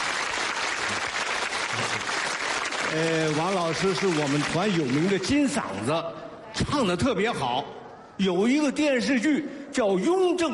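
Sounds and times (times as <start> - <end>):
audience applause: 0.0 - 5.6
speech: 2.9 - 10.5.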